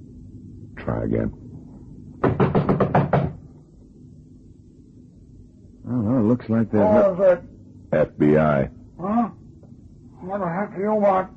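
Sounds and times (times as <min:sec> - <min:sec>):
speech: 0:00.8 - 0:01.4, 0:06.4 - 0:09.2, 0:10.3 - 0:11.3
knocking on an apartment door: 0:02.2 - 0:03.5.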